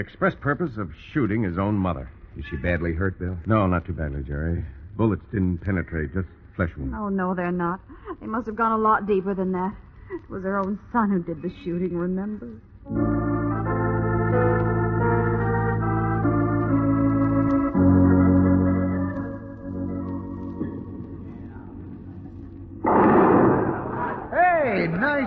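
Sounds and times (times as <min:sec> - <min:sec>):
speech: 0:00.0 - 0:13.3
sustained musical tones: 0:12.9 - 0:22.9
bowling ball strike knocking down pins: 0:20.6 - 0:24.5.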